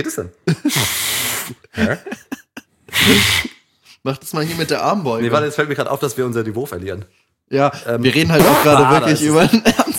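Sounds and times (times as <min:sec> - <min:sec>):
speech: 0:00.0 - 0:02.2, 0:03.0 - 0:09.9
person imitating a fart with their mouth: 0:02.9 - 0:03.6, 0:08.4 - 0:09.0.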